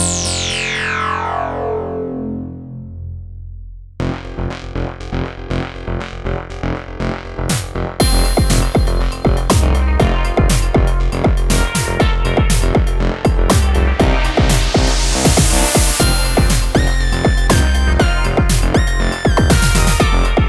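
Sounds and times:
synth sound through filters in series: 0.0 - 3.3, 4.0 - 20.4.

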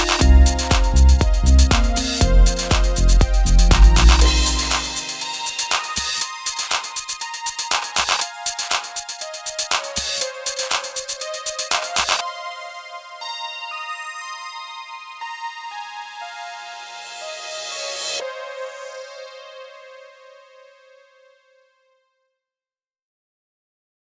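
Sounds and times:
house music loop: 0.0 - 12.2.

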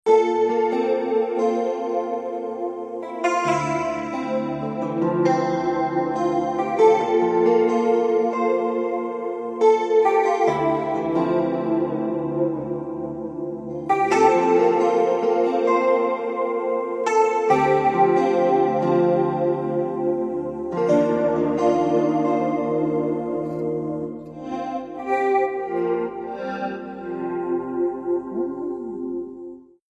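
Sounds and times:
guitar fret solo: 0.1 - 29.5.

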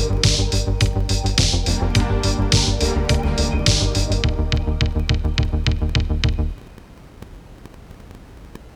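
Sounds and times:
lo-fi synthwave music: 0.0 - 6.6.

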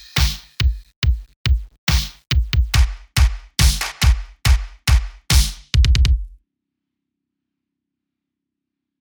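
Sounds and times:
rich drum beats: 0.0 - 6.4.

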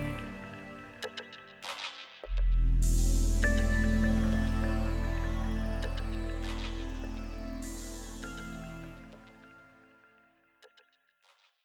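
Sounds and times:
vortex soundwaves: 0.0 - 1.6, 2.3 - 10.0.

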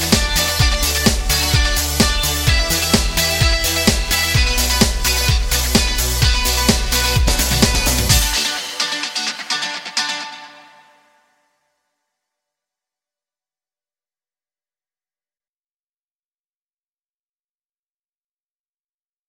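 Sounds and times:
sparkling guitar playing: 0.0 - 11.2.

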